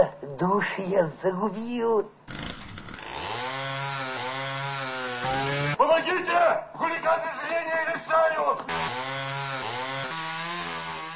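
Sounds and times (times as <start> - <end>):
speech: 0.0 - 2.4, 5.2 - 9.3
sawing: 2.3 - 5.8, 8.7 - 11.1.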